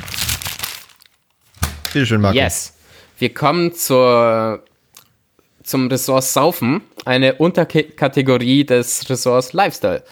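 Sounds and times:
rustling and crinkling: 0.0s - 2.0s
speech: 2.0s - 4.7s, 5.6s - 10.1s.

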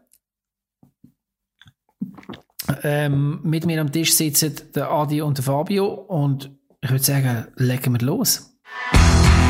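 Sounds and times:
big sip and gulping from a drink: 1.6s - 2.9s
speech: 2.7s - 9.3s.

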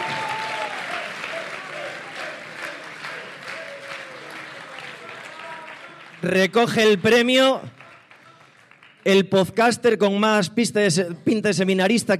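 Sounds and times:
audience applause: 0.0s - 9.1s
speech: 6.2s - 7.8s, 9.0s - 12.1s.

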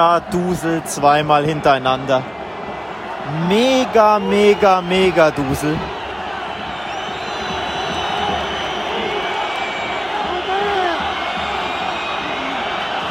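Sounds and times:
speech: 0.0s - 2.4s, 3.2s - 6.0s
stadium crowd whistling in protest: 3.7s - 13.1s.

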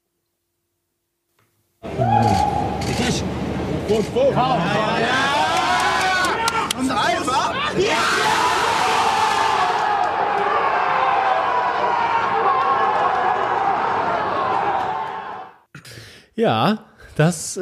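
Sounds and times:
stadium crowd roaring cheer: 1.8s - 15.6s
speech: 3.9s - 5.4s, 16.4s - 17.6s
scattered shouts: 4.4s - 15.5s.

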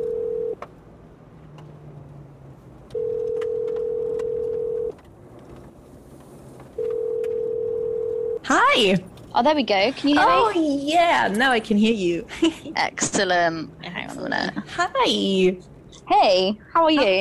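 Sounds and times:
phone line ringing on the other end: 0.0s - 0.6s, 2.9s - 4.9s, 6.8s - 8.4s
low hum: 0.0s - 17.1s
speech: 8.5s - 17.1s.

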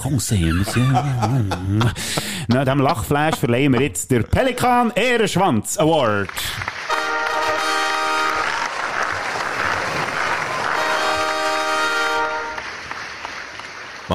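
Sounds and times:
laughter: 0.0s - 4.1s
speech: 0.0s - 6.8s
applause: 5.9s - 14.1s
long blaring horn-like tones: 6.9s - 8.6s, 10.6s - 12.7s.

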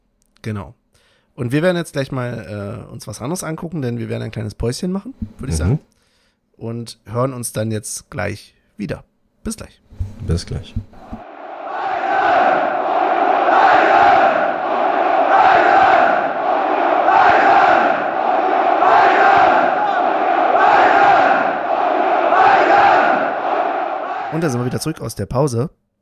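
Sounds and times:
speech: 0.4s - 0.8s, 1.4s - 6.0s, 6.6s - 11.2s, 24.4s - 25.8s
football stadium crowd roaring and chanting at home match: 11.2s - 24.8s.

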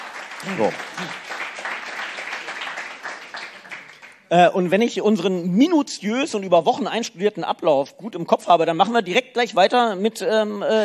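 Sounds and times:
audience applause: 0.0s - 4.2s
speech: 0.4s - 1.3s, 4.3s - 10.8s.

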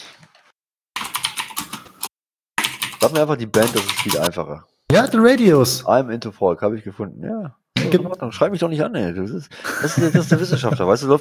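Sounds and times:
typing on a computer keyboard: 1.0s - 4.3s
speech: 3.0s - 11.1s
laughter: 9.6s - 11.1s.

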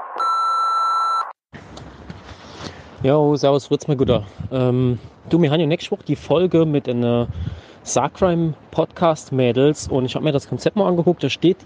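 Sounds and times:
voicemail signal tone beep: 0.0s - 1.4s
speech: 3.0s - 11.6s.

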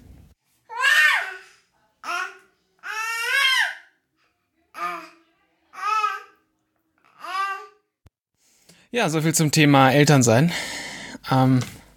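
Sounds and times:
baby crying and babbling: 0.7s - 4.0s, 4.7s - 6.4s, 7.0s - 7.9s
speech: 8.9s - 11.8s.

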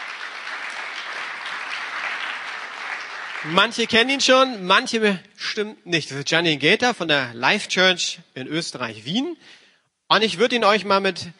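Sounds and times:
audience applause: 0.0s - 4.4s
speech: 3.4s - 11.3s.

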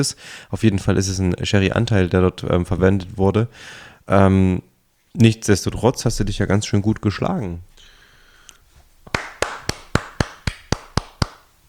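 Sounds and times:
speech: 0.0s - 7.7s
one-handed clapping: 9.1s - 11.5s.

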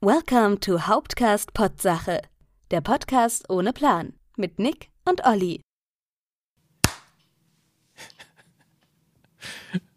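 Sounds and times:
speech: 0.0s - 5.7s
sharp hand clap: 6.8s - 7.2s.

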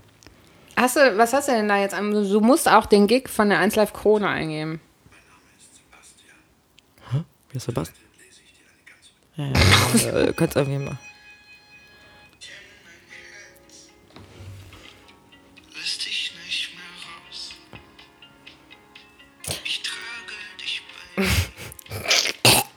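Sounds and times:
faint busy background: 0.0s - 22.7s
speech: 0.8s - 4.9s, 7.1s - 8.0s, 9.4s - 11.1s
person gagging and retching as vomit rises in the throat: 9.5s - 10.2s, 19.4s - 19.7s, 21.2s - 22.7s.

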